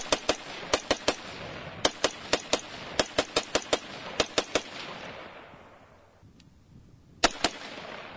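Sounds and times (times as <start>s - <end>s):
gunfire from a 100-round gun: 0.0s - 5.6s, 7.2s - 8.1s.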